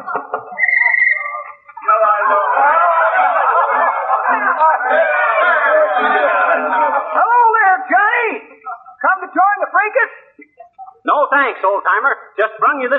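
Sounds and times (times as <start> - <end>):
bursts of laughter and snickers: 0.0 - 7.2
noisy party chatter: 0.0 - 9.7
speech: 11.4 - 12.9.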